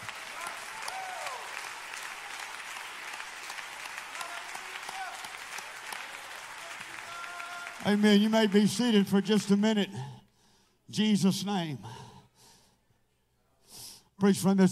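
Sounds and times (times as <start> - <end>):
audience clapping hands: 0.0 - 9.9
speech: 7.8 - 10.2, 10.9 - 12.1, 14.2 - 14.7.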